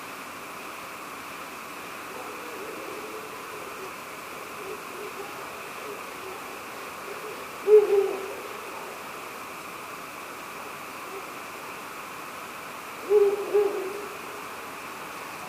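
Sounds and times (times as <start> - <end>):
soft steady hiss: 0.0 - 15.4
Ural owl hooting: 2.0 - 9.5, 10.5 - 11.8, 12.9 - 14.7.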